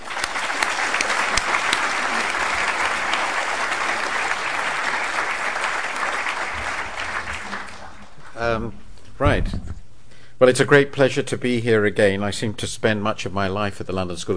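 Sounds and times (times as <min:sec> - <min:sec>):
lecture audience applause at the London School of Economics welcoming a speaker: 0:00.0 - 0:08.4
speech: 0:08.6 - 0:09.8, 0:10.4 - 0:14.3.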